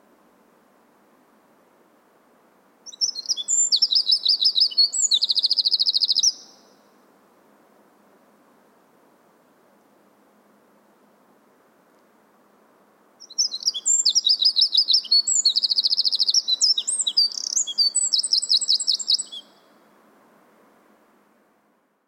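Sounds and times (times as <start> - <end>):
background hiss: 0.0 - 22.0
Eurasian wren song: 2.8 - 7.1, 13.2 - 20.0.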